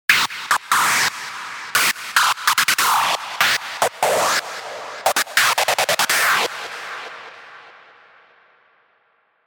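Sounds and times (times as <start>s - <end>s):
screech schranz hard techno music: 0.1s - 7.5s.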